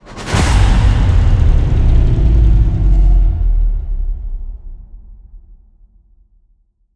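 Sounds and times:
modulated stinger: 0.1s - 5.1s.

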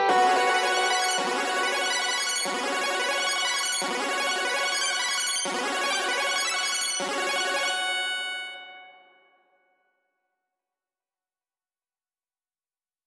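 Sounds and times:
synths at 110 bpm: 0.1s - 8.8s.

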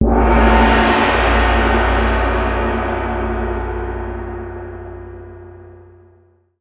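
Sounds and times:
large gong: 0.0s - 6.3s.

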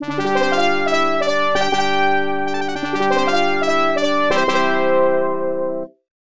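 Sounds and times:
fanfare: 0.0s - 5.9s.

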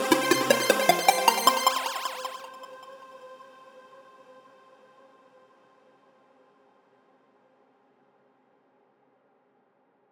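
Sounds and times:
synths: 0.0s - 2.8s.

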